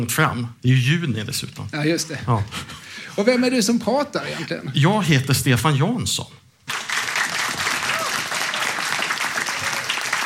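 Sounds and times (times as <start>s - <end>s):
speech: 0.0s - 6.4s
audience applause: 6.7s - 10.2s.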